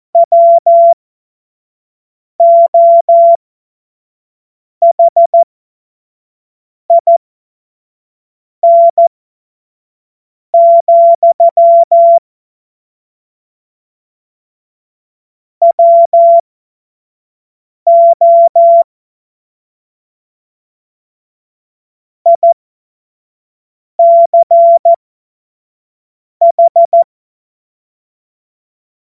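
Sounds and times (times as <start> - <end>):
CW Morse code beeps: 0.2 - 1.0, 2.4 - 3.4, 4.8 - 5.4, 6.9 - 7.2, 8.6 - 9.0, 10.6 - 12.2, 15.6 - 16.4, 17.9 - 18.8, 22.3 - 22.6, 24.0 - 25.0, 26.4 - 27.1.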